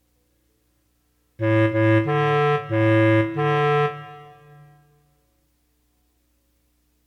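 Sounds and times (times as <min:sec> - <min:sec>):
melody: 0:01.4 - 0:04.8.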